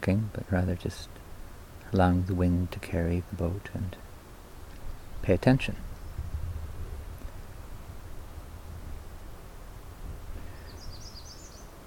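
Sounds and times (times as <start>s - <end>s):
speech: 0.0s - 1.2s, 1.9s - 4.0s, 5.2s - 5.9s
bird song: 4.8s - 6.3s, 10.4s - 11.8s.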